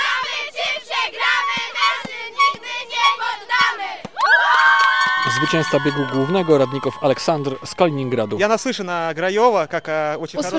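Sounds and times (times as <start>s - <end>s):
race fans cheering: 1.2s - 8.8s
shrill whoop: 4.2s - 8.4s
speech: 5.4s - 10.5s.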